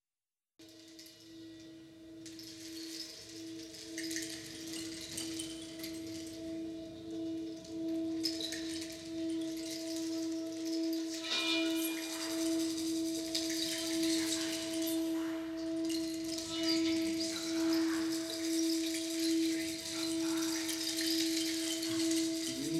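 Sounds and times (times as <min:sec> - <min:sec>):
Native American chant: 0:04.6 - 0:22.7.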